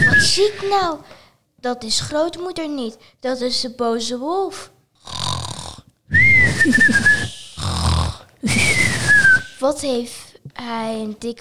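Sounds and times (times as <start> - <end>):
speech: 0.3 - 5.2, 6.4 - 7.2, 9.6 - 11.3
loud snoring: 5.0 - 9.6.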